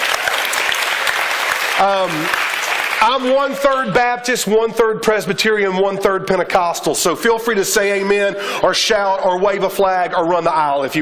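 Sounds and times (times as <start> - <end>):
audience clapping: 0.0 - 3.8
speech: 1.8 - 2.4, 3.0 - 11.0.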